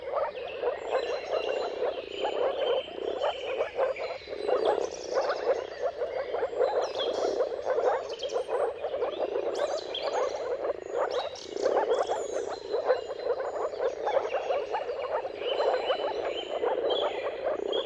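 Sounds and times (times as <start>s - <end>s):
birds singing faintly: 0.0s - 17.8s
moor frog mating chorus: 0.0s - 17.8s.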